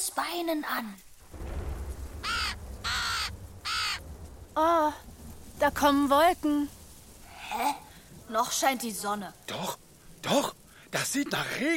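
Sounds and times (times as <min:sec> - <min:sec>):
speech: 0:00.0 - 0:01.1, 0:04.6 - 0:06.8, 0:07.5 - 0:11.7
low rumble: 0:01.1 - 0:10.9
crow cawing: 0:02.1 - 0:04.2.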